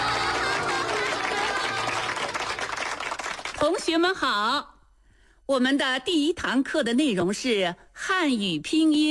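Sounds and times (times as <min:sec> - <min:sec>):
applause: 0:00.0 - 0:04.2
speech: 0:03.6 - 0:04.7, 0:05.5 - 0:09.0.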